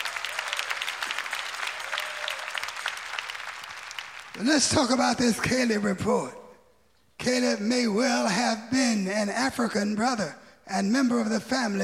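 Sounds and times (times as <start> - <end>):
audience clapping: 0.0 - 5.8
speech: 4.4 - 6.4, 7.2 - 11.8.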